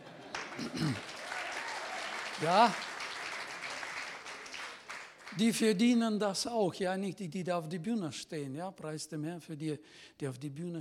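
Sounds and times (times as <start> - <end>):
crowd clapping: 0.0 - 5.8
speech: 2.4 - 2.9, 5.4 - 10.7.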